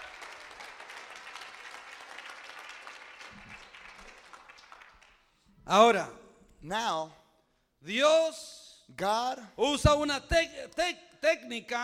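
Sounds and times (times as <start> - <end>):
congregation clapping in praise during a bilingual church service: 0.0 - 5.4
speech: 5.7 - 7.2, 7.8 - 11.8.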